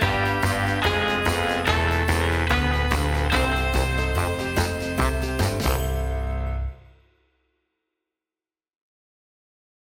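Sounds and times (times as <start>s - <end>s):
backing track: 0.0s - 7.0s.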